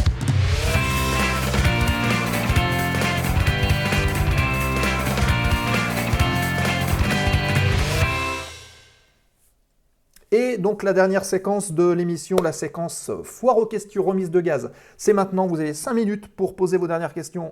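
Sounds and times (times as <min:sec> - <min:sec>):
radio show jingle for an aviation program with driving beat: 0:00.0 - 0:08.5
speech: 0:10.6 - 0:17.5.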